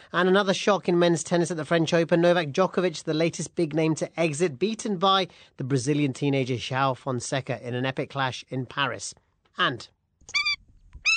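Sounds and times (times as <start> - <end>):
speech: 0.1 - 10.4
endangered Indian skimmer bird calling: 10.3 - 11.1.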